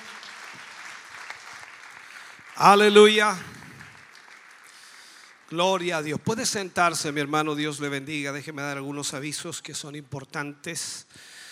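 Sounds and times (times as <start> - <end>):
audience applause: 0.0 - 5.6
speech: 2.6 - 3.5, 5.5 - 11.4.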